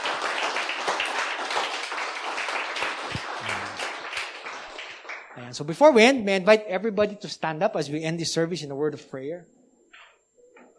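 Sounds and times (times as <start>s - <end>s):
congregation clapping at a Sunday church service: 0.0s - 6.2s
speech: 5.5s - 9.6s.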